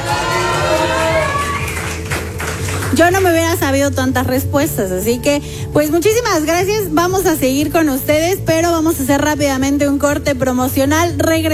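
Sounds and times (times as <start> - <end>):
audience applause: 0.0 - 3.1
speech: 3.0 - 11.5.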